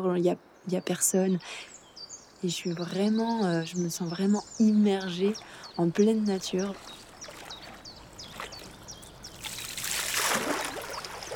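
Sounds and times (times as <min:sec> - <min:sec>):
speech: 0:00.0 - 0:01.8, 0:02.4 - 0:07.0
water drops dripping from a paddle: 0:06.7 - 0:11.3.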